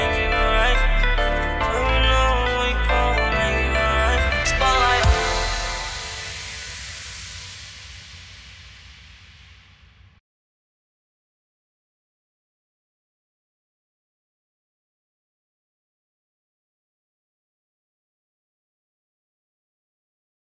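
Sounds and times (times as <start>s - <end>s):
bass boosted remix music: 0.0s - 9.1s.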